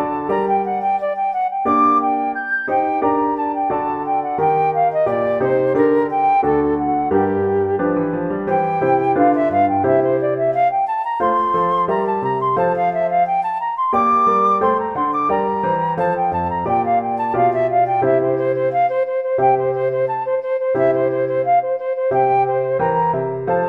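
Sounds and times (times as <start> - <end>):
baroque flute sonata: 0.0 - 23.6.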